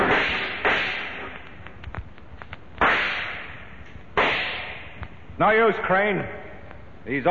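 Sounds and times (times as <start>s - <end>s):
gunshots in a tunnel shootout, radio drama sound effect: 0.1s - 1.4s, 2.8s - 4.9s
speech: 5.7s - 6.4s, 7.1s - 7.2s.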